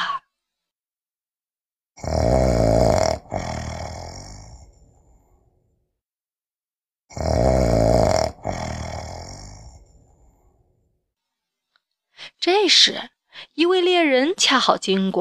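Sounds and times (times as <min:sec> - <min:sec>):
wolf snoring while asleep: 0:02.0 - 0:05.3, 0:07.1 - 0:10.5
speech: 0:12.7 - 0:15.1.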